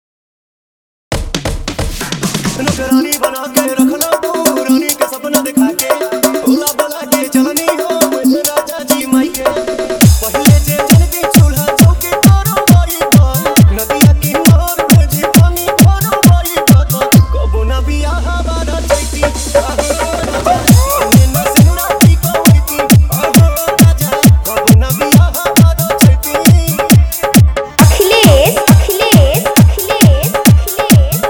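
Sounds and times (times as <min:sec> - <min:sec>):
Bhojpuri song remix with hard dholki: 0:01.1 - 0:31.2.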